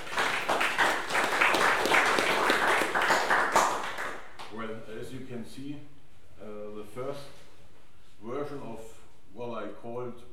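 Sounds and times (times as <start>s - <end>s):
crowd applauding: 0.0s - 4.4s
speech: 5.4s - 7.4s.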